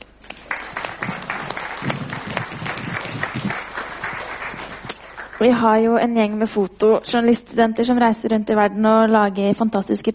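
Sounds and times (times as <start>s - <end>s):
audience applause: 0.3s - 5.7s
speech: 5.4s - 10.1s.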